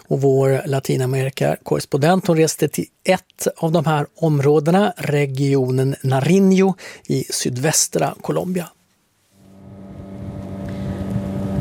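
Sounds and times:
speech: 0.1 - 8.8
motorboat engine on the Patía river near Tumaco in southern Colombia: 9.4 - 11.5
rushing wind noise: 9.5 - 11.5.

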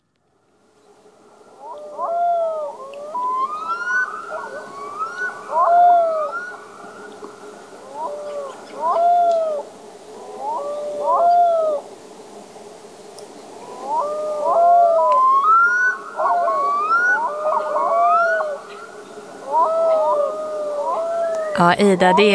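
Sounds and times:
black-throated loon call with howling wail: 1.4 - 12.0, 13.6 - 22.3
speech: 21.6 - 22.3.

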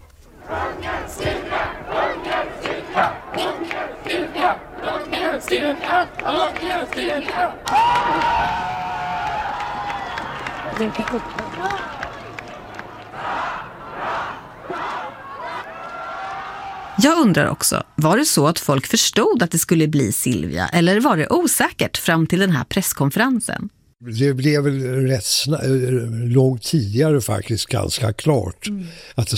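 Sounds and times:
crowd cheering: 0.3 - 18.8
speech: 5.3 - 8.8, 10.8 - 12.0, 17.0 - 29.3.

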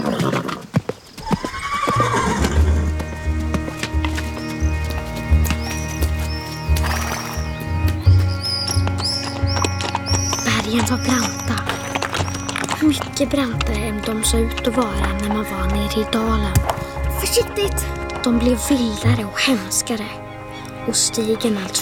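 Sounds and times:
horse whinnying as a rider sets off: 0.0 - 3.3, 8.2 - 13.2
hooves clip-clopping: 0.0 - 21.8
birds chirping: 1.0 - 21.8
orchestral music: 2.0 - 21.8
speech: 13.2 - 21.8.

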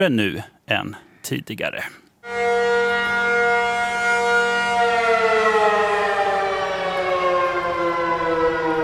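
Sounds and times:
speech: 0.0 - 2.0
civil defense all-clear siren in the subway: 2.2 - 8.8.

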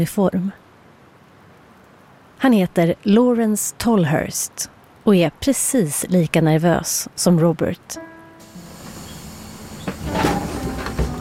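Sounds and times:
speech: 0.0 - 0.6, 2.4 - 8.1
bus doors opening with a hiss: 8.4 - 11.1.

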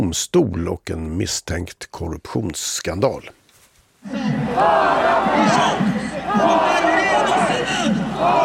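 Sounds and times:
speech: 0.0 - 3.4, 4.0 - 8.4
protest crowd chanting on Avenida Paulista: 4.1 - 8.4.

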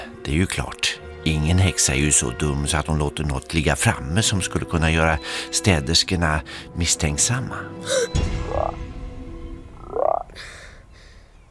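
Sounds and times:
speech: 0.2 - 8.8
two frogs croaking: 7.9 - 8.9, 9.5 - 11.0.

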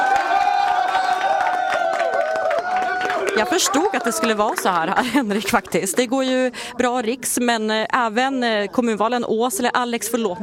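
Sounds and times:
Liberal Party supporters cheering at an election-night watch party at Cinco: 0.0 - 4.8
scattered clapping: 0.0 - 6.1
speech: 3.4 - 10.4.

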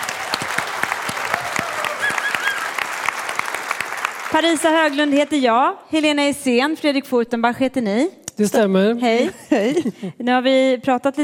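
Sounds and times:
audience applause: 0.0 - 5.4
speech: 4.3 - 11.2.

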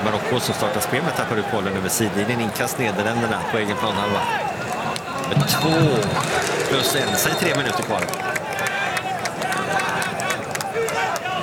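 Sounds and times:
speech: 0.2 - 8.3
stadium crowd clapping and cheering: 4.0 - 11.4.

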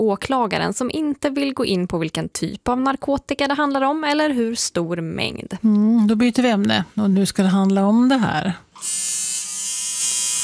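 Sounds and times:
speech: 0.0 - 9.2
tattoo machine buzzing: 8.8 - 10.4.

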